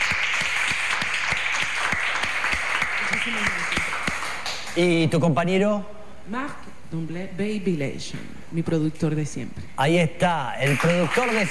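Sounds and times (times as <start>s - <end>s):
applause: 0.0s - 4.9s, 10.6s - 11.5s
speech: 3.2s - 3.8s, 4.8s - 11.5s.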